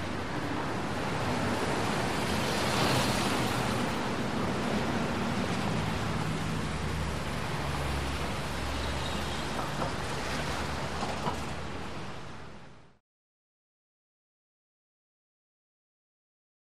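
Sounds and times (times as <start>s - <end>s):
medium busy traffic in a big city: 0.0s - 13.0s.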